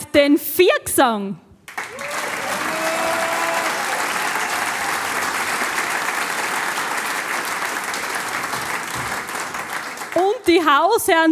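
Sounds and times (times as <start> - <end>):
speech: 0.2 - 1.5, 10.4 - 11.2
audience applause: 1.7 - 10.3.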